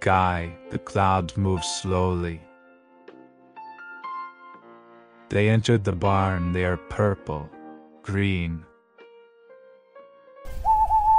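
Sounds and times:
speech: 0.0 - 2.5, 5.3 - 8.7
Scops owl calling: 10.5 - 11.1.

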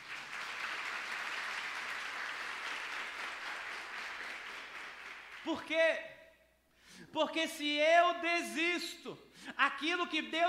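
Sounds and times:
applause: 0.0 - 5.8
speech: 5.4 - 6.1, 7.0 - 10.4.

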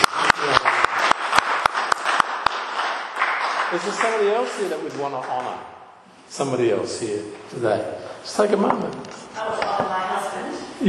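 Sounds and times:
audience clapping: 0.0 - 5.6
speech: 3.7 - 10.0.

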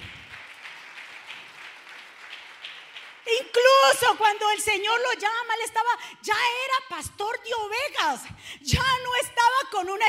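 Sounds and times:
audience applause: 0.0 - 3.5
speech: 3.9 - 10.0.

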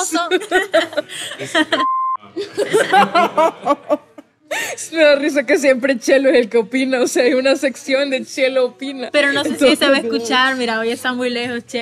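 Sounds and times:
people laughing: 0.0 - 4.7
speech: 0.1 - 11.7
censor bleep over spoken words: 1.8 - 2.2.

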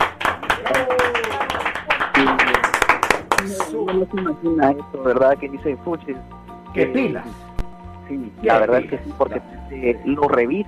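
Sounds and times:
applause, hands clapping: 0.0 - 4.5
speech: 3.9 - 7.5, 8.1 - 10.6.

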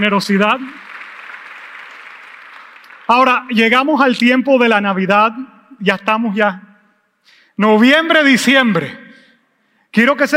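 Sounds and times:
speech: 0.0 - 0.8, 3.1 - 9.0, 10.0 - 10.3
crowd clapping: 0.0 - 3.6.

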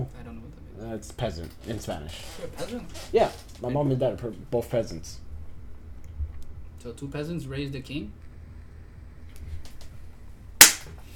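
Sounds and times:
speech: 0.8 - 5.2, 6.8 - 8.2
sharp hand clap: 10.6 - 11.0.

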